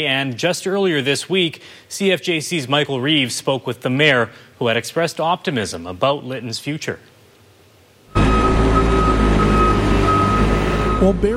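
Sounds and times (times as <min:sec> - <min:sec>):
speech: 0:00.0 - 0:07.1, 0:11.0 - 0:11.3
dull hum of construction in the streets of Lytton: 0:08.1 - 0:11.3
truck reversing beeps: 0:08.1 - 0:11.3.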